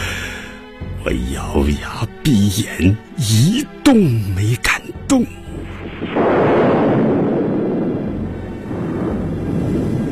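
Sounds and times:
speech: 1.0s - 5.4s
thunder: 5.7s - 10.1s.

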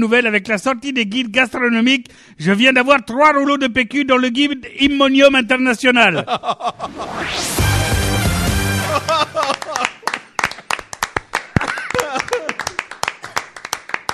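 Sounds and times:
speech: 0.0s - 7.7s
laughter: 6.2s - 7.2s, 8.8s - 10.2s, 11.6s - 12.9s
music: 7.2s - 9.4s
audience applause: 8.0s - 14.1s.

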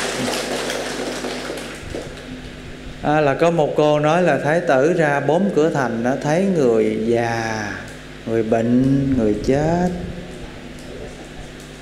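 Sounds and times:
audience applause: 0.0s - 2.3s
speech: 3.0s - 10.1s.

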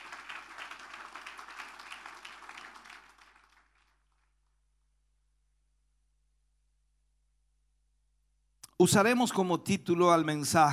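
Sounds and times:
crowd applauding at a worship service: 0.0s - 4.3s
speech: 8.8s - 10.7s.

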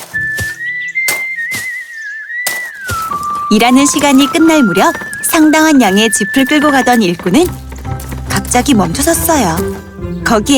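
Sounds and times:
person whistling a tune: 0.0s - 7.2s
speech: 3.5s - 7.6s, 8.4s - 10.5s.

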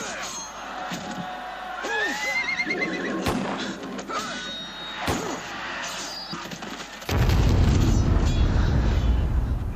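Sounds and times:
huge horses snorting, neighing and whinnying: 1.9s - 4.5s
explosive cracks and booms of Spanish soldiers opening fire: 7.1s - 9.7s.

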